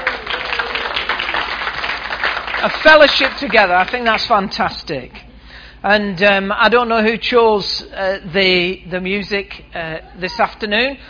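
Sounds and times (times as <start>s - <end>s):
audience clapping at a fellowship gathering: 0.0s - 4.6s
speech: 2.6s - 5.2s, 5.8s - 11.0s.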